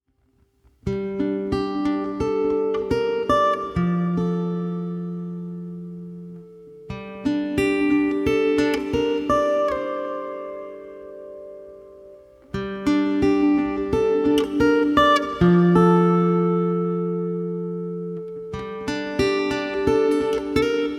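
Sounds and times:
fingerstyle acoustic guitar melody: 0.2 - 20.9.

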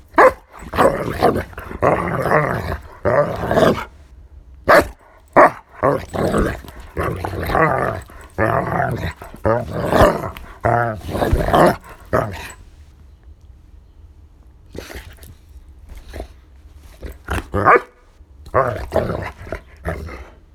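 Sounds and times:
dog growling: 0.0 - 4.0, 4.7 - 12.7, 16.9 - 20.4
dog barking: 0.1 - 3.9, 4.7 - 12.6, 17.6 - 18.0.

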